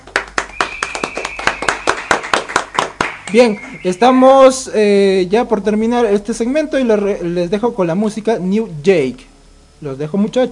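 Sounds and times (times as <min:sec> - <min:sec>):
audience applause: 0:00.0 - 0:03.8
speech: 0:03.3 - 0:10.5.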